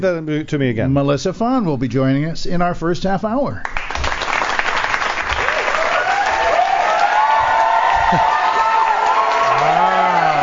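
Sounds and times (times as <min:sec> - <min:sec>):
speech: 0:00.0 - 0:03.8, 0:08.1 - 0:08.3
applause from a large crowd: 0:03.8 - 0:10.4
crowd whoops and shouts: 0:05.3 - 0:10.4.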